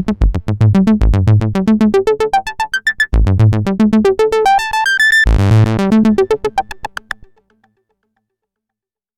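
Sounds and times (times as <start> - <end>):
Korg DW-8000 synthesizer arpeggiator with saw and sine waves: 0.0 - 7.2.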